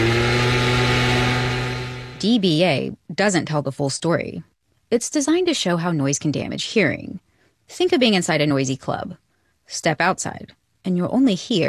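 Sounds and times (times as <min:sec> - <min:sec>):
gas-powered leaf blower running: 0:00.0 - 0:02.2
speech: 0:02.2 - 0:11.6.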